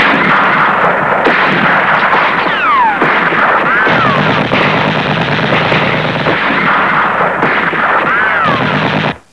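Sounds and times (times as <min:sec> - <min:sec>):
gunshot: 0:00.0 - 0:09.2.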